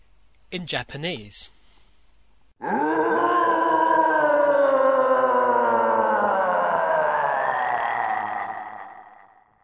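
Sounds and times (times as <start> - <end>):
speech: 0.5 - 1.6, 2.6 - 3.2
video game guardian creature roar: 2.6 - 9.6.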